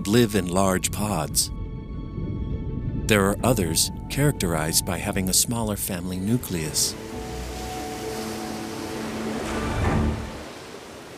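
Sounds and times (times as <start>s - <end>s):
speech: 0.0s - 1.6s, 3.1s - 7.3s
ocean waves crashing against a cliff in the South Pacific: 7.0s - 11.1s.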